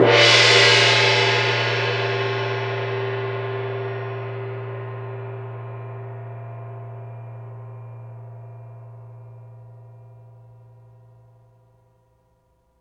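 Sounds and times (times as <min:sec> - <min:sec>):
medium cymbals: 0:00.0 - 0:06.2.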